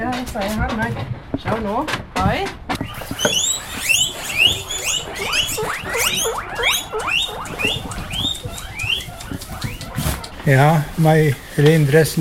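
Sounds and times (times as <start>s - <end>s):
speech: 0.0s - 2.6s, 10.5s - 12.1s
guinea pig squealing: 2.8s - 11.3s.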